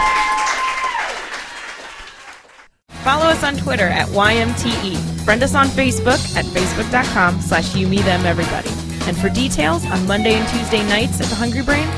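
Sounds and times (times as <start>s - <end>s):
applause from a live stage-show audience: 0.0s - 2.7s
speech: 3.1s - 11.9s.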